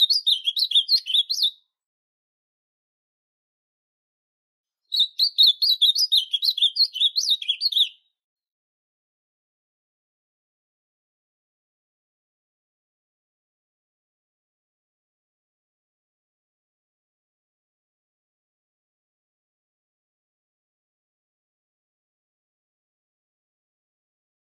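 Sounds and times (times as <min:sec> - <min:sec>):
azulão singing: 0:00.0 - 0:01.6, 0:04.9 - 0:08.1.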